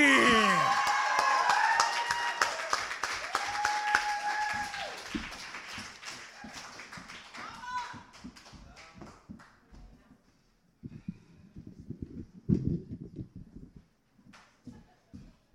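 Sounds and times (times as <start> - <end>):
crowd whooping and cheering: 0.0 - 5.2
crowd applauding: 0.0 - 9.1.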